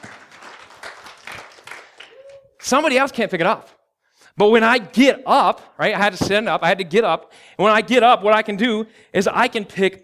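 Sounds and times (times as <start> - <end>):
audience applause: 0.0 - 2.2
speech: 2.7 - 3.8, 4.4 - 10.0.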